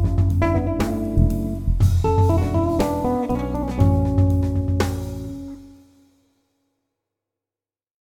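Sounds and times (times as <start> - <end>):
bass: 0.0 - 5.7.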